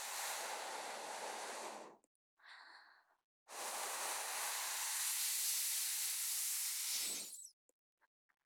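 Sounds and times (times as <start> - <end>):
blowing into ear: 0.0 - 2.0, 3.5 - 7.5.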